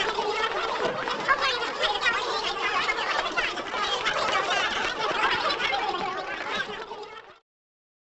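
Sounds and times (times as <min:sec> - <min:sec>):
high-pitched vintage cartoon comedy crowd walla: 0:00.0 - 0:07.4.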